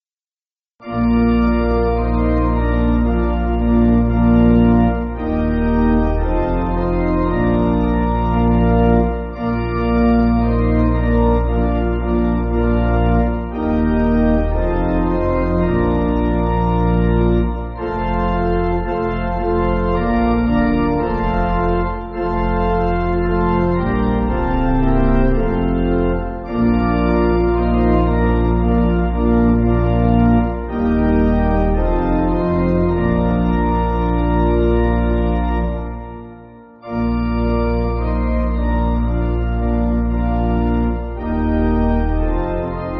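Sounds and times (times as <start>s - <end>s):
pipe organ church music: 0.8s - 42.9s.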